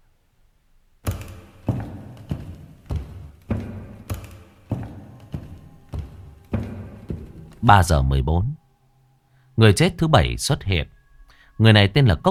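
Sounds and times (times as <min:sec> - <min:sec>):
footsteps from a back bedroom: 0:01.0 - 0:07.9
speech: 0:07.6 - 0:08.6, 0:09.6 - 0:11.0, 0:11.6 - 0:12.2.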